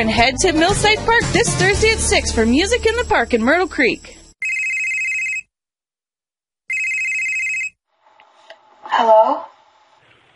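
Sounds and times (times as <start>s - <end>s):
speech: 0.0s - 4.2s
telephone ringing with a bright trilling bell: 4.0s - 5.5s, 6.7s - 7.8s.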